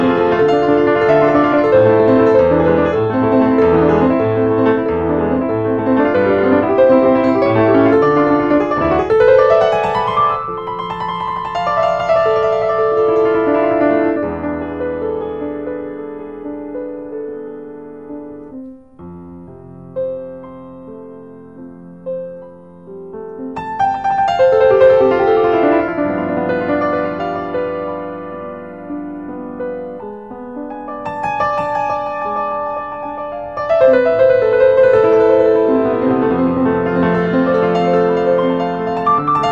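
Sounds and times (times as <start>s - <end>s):
classical piano: 0.0s - 39.5s.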